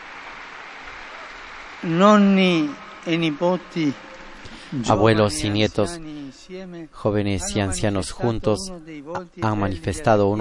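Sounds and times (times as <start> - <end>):
audience applause: 0.0 - 5.3
speech: 1.8 - 4.1, 4.7 - 10.3.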